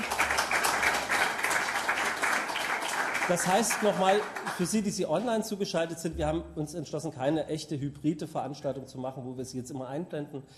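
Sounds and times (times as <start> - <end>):
audience applause: 0.0 - 4.9
speech: 3.3 - 10.5.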